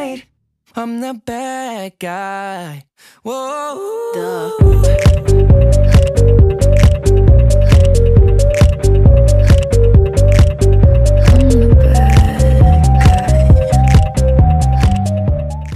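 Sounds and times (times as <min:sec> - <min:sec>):
remix ringtone: 0:04.6 - 0:15.7.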